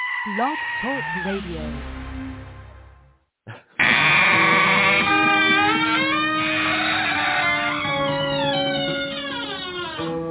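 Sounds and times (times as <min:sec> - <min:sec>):
speech: 0:00.2 - 0:02.2
goat bleating: 0:04.2 - 0:10.2.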